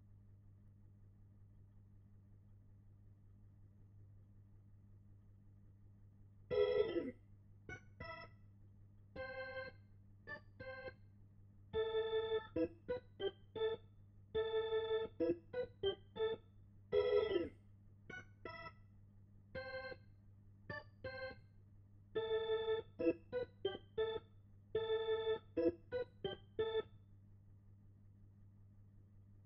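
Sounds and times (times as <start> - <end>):
Hammond organ: 6.5 - 7.1, 7.7 - 8.3, 9.2 - 11.0, 11.7 - 18.8, 19.5 - 20.1, 20.7 - 21.5, 22.2 - 26.9.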